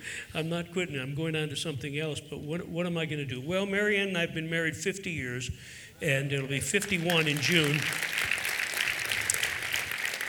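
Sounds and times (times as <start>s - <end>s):
speech: 0.2s - 8.1s
audience applause: 6.7s - 10.2s.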